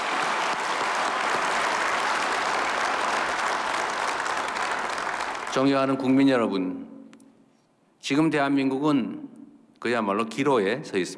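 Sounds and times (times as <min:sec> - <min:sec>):
audience applause: 0:00.0 - 0:05.7
speech: 0:05.5 - 0:06.9, 0:08.0 - 0:11.1.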